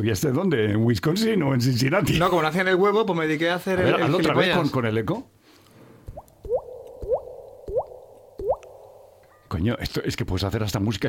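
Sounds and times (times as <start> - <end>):
speech: 0.0 - 5.3, 9.6 - 11.0
water dripping: 6.0 - 9.5.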